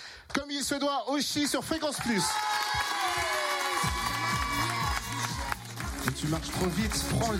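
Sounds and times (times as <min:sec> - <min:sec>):
speech: 0:00.6 - 0:04.0, 0:06.2 - 0:07.3
studio audience clapping: 0:01.7 - 0:07.3
studio audience whoops and shouts: 0:02.0 - 0:05.8.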